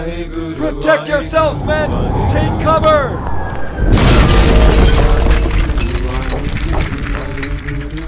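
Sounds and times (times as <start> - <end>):
speech: 0.0 - 3.9
massive boulder slamming into the ground: 3.8 - 7.6.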